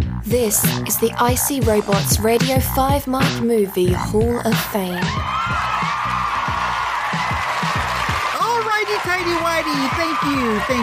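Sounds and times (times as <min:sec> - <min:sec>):
speech: 0:00.2 - 0:05.6, 0:08.9 - 0:10.8
crowd applause: 0:05.2 - 0:10.8.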